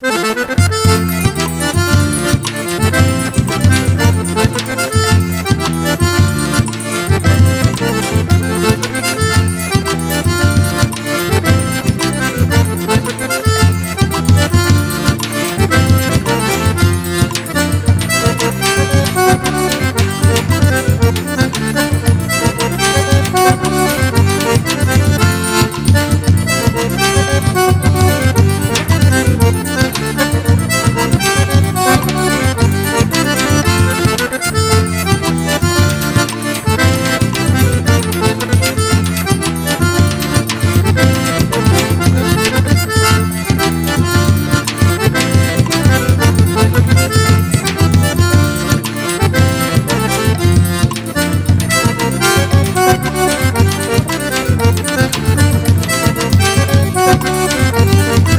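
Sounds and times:
forro accordion playing: 0:00.0 - 0:58.3.

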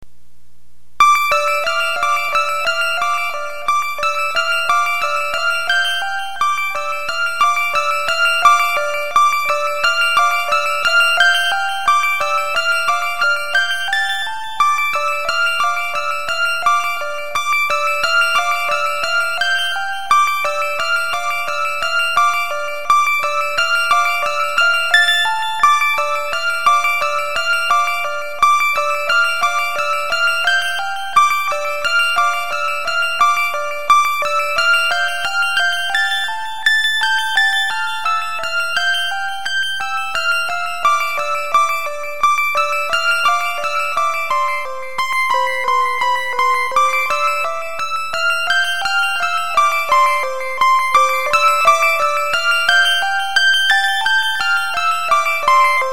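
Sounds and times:
children's keyboard playing: 0:01.0 - 0:55.9.

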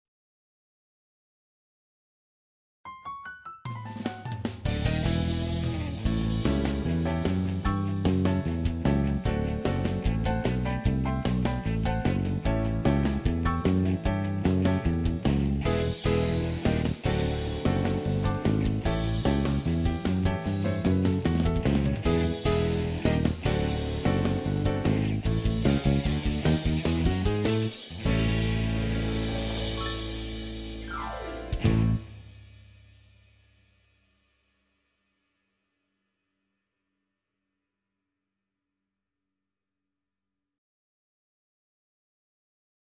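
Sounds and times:
backing track for a sung jingle: 0:03.1 - 0:32.3.

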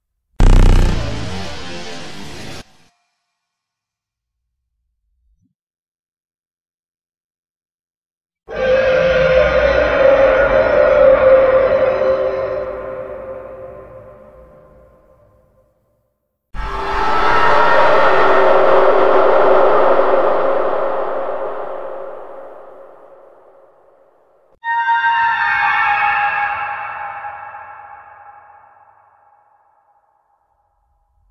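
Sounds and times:
scary horror sound effects: 0:00.4 - 0:02.9, 0:08.5 - 0:15.3, 0:16.6 - 0:30.0.

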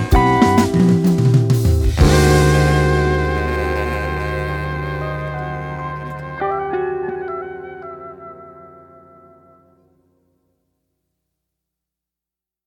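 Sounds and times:
instrumental punk jazz: 0:00.0 - 0:09.9.

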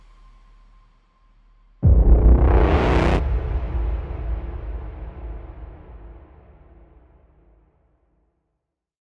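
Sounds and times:
epic modern hybrid horror music: 0:01.8 - 0:07.3.

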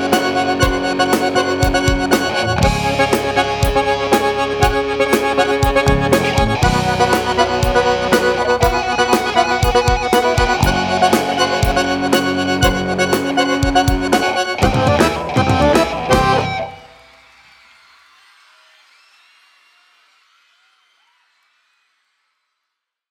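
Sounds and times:
live opening music mix: 0:00.0 - 0:17.2.

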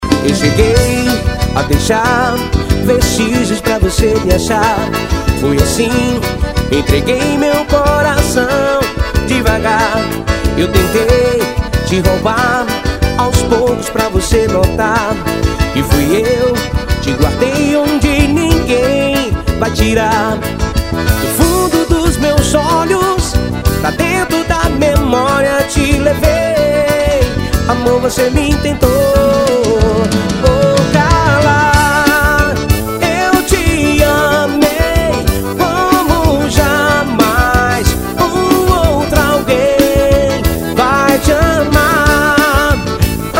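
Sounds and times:
live forró music: 0:00.0 - 0:43.3.

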